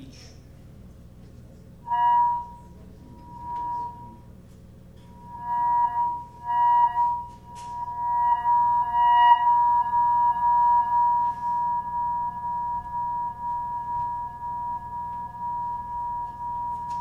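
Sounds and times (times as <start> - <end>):
instrument tuning: 1.8 - 4.4, 5.0 - 17.0.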